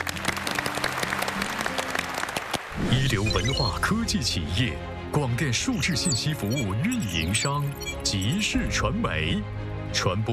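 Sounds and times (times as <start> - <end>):
audience applause at a Chinese event honouring firefighters: 0.0 - 3.2
speech: 3.0 - 10.3.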